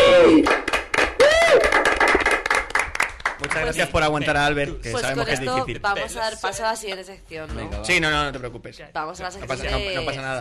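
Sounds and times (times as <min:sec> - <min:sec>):
applause: 0:00.0 - 0:04.1
speech: 0:03.6 - 0:10.3.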